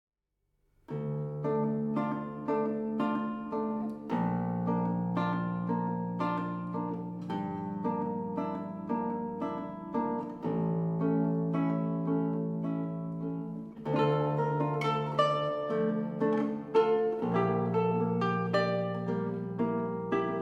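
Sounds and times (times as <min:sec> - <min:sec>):
10-string guitar: 0:00.8 - 0:20.3.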